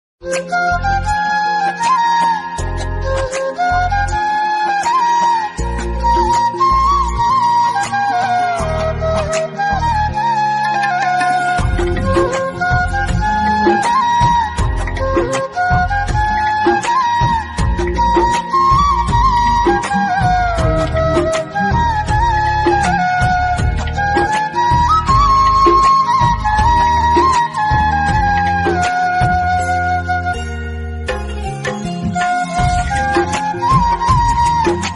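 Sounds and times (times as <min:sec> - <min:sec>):
flute instrumental ringtone: 0:00.2 - 0:34.9.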